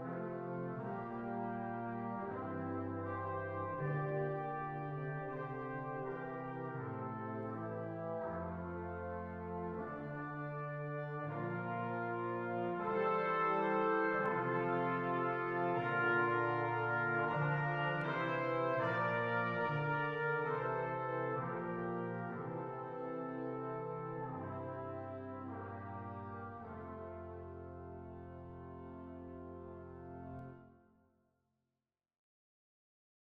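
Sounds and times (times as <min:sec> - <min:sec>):
brass quartet of two trumpets, trombone and tuba playing: 0:00.0 - 0:30.7.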